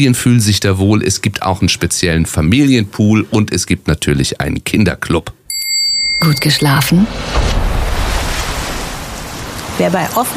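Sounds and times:
speech: 0.0 - 5.4, 6.2 - 7.7, 9.8 - 10.3
Mediterranean sea waves: 6.0 - 10.3.

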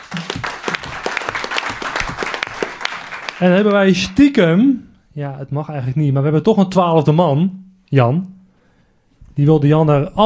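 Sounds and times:
audience applause: 0.0 - 4.2
speech: 3.4 - 8.4, 9.4 - 10.2.

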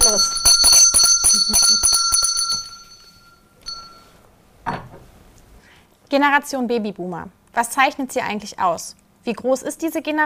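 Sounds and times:
small hand bell ringing as opening bell: 0.0 - 4.2
speech: 6.2 - 10.2.

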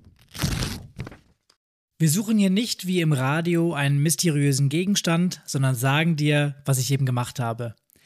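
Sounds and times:
bag of stickers tearing open: 0.0 - 1.3
speech: 2.0 - 7.8.

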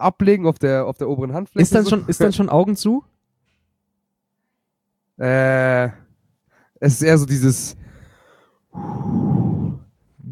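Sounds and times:
speech: 0.0 - 3.1, 5.2 - 6.0, 6.8 - 7.9, 8.8 - 9.6
heavy breathing: 7.7 - 10.3.

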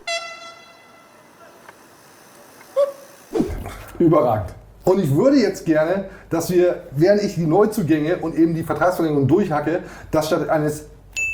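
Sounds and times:
steady buzzy horn tone: 0.0 - 1.5
speech: 3.7 - 10.9.

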